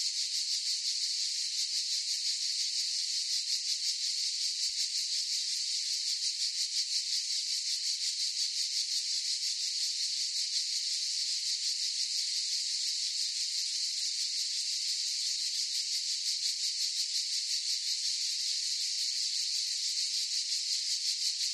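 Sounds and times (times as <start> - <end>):
cicadas buzzing in a forest chorus: 0.0 - 21.5.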